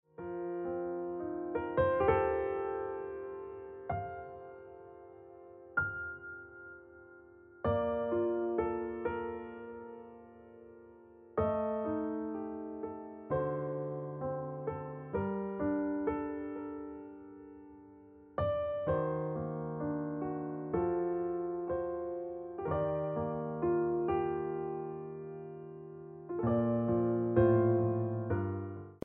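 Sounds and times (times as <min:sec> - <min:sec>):
piano music: 0:00.1 - 0:29.0.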